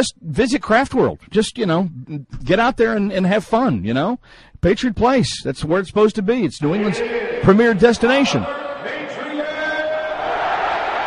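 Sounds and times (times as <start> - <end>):
speech: 0.0 - 8.6
crowd cheering: 6.6 - 11.0.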